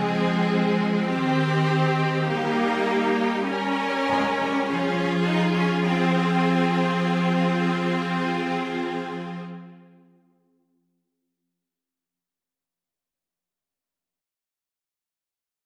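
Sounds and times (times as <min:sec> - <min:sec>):
mixed ensemble of four players playing a canon in A minor: 0:00.0 - 0:09.9.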